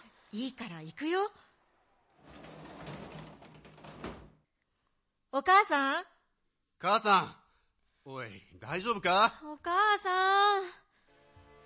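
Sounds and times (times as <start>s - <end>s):
speech: 0.3s - 1.4s, 5.3s - 6.1s, 6.8s - 7.4s, 8.0s - 10.8s
front door being unlocked and opened: 2.1s - 4.4s.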